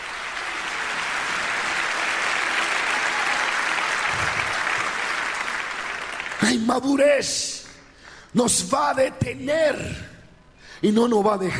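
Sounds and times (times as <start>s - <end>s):
audience clapping: 0.0s - 7.0s
speech: 6.4s - 7.6s, 8.3s - 10.1s, 10.8s - 11.5s.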